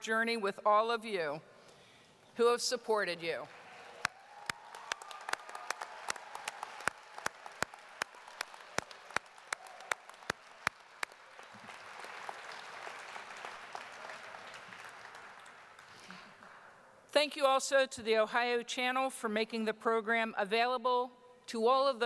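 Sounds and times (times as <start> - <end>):
speech: 0.0 - 1.5, 2.4 - 3.6, 17.2 - 22.0
audience applause: 3.5 - 16.8
loud evenly timed claps: 4.0 - 16.8.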